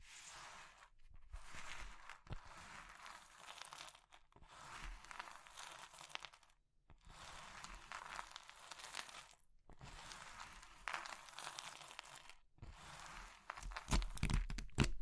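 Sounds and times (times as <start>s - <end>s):
crushing crumbly material like chalk or meringue: 1.4s - 15.0s.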